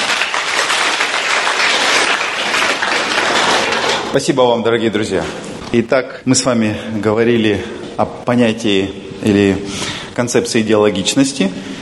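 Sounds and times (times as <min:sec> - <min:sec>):
audience applause: 0:00.0 - 0:04.2
speech: 0:04.1 - 0:11.8.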